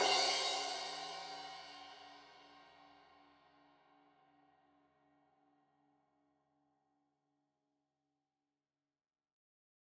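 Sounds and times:
15 inch crash cymbal edge hit: 0.0 - 1.9.

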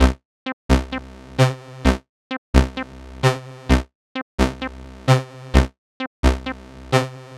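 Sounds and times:
130 BPM trance synth loop in C: 0.0 - 2.0, 2.6 - 3.8, 4.4 - 5.6, 6.2 - 7.3.

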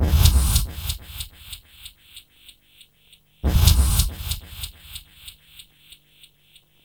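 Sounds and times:
reversed swing music: 0.0 - 1.6, 3.4 - 5.3.

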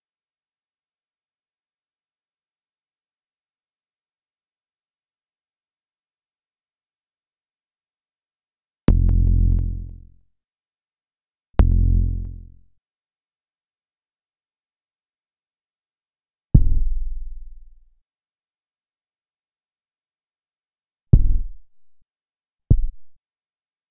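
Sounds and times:
simple sub bass: 8.9 - 10.2, 11.6 - 12.6, 16.6 - 17.8, 21.2 - 21.7, 22.7 - 23.1.

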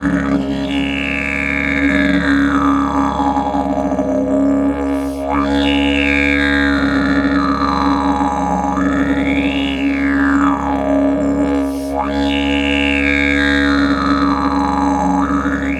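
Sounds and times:
long didgeridoo drone in C sharp: 0.0 - 15.7.

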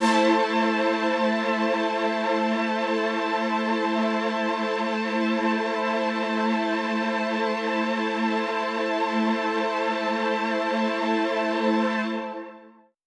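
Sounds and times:
synth string orchestra in A minor: 0.0 - 12.7.

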